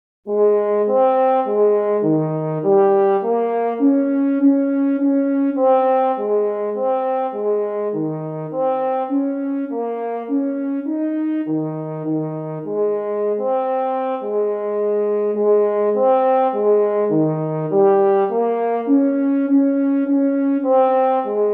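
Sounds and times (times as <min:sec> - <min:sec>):
duo of horns playing a sonatina in B flat major: 0:00.3 - 0:21.5.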